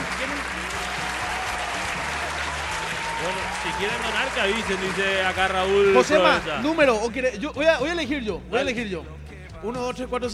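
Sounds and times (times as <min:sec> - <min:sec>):
quick round of applause from a group: 0:00.0 - 0:07.1
speech: 0:03.2 - 0:10.3.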